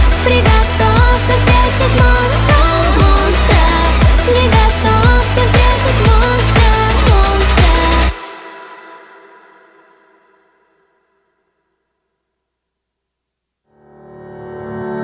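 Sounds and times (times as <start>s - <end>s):
vocaloid singing in Russian: 0.0s - 10.1s.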